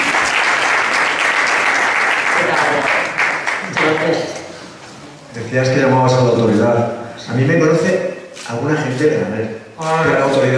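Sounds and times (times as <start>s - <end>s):
audience applause: 0.0s - 4.2s
speech: 5.5s - 10.5s.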